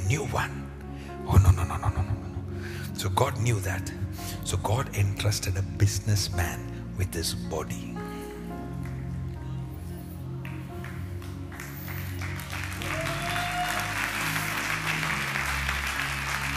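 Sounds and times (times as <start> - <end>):
speech: 0.1 - 0.6, 1.2 - 2.2, 2.9 - 8.0
audience clapping: 8.8 - 9.4, 10.4 - 16.5.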